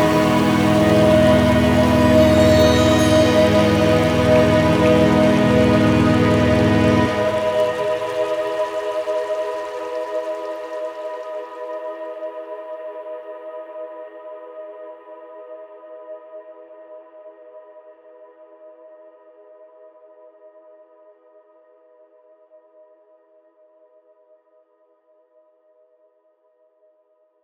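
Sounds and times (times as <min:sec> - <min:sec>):
tonal meditation: 0:00.0 - 0:11.0.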